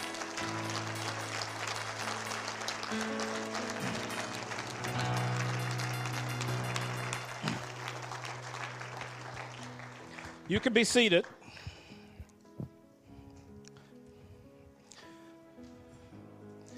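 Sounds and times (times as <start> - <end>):
audience clapping: 0.0 - 11.9
speech: 2.9 - 3.3, 10.5 - 11.4.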